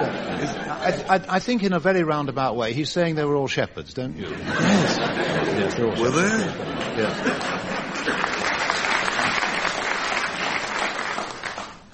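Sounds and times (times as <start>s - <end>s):
laughter: 0.0s - 1.4s, 4.2s - 9.9s
speech: 0.4s - 8.3s
audience applause: 6.6s - 11.9s.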